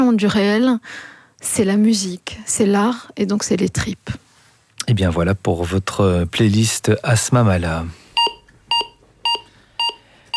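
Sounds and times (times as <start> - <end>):
speech: 0.1 - 4.2, 4.8 - 8.0
electrocardiogram beeps: 8.2 - 10.3.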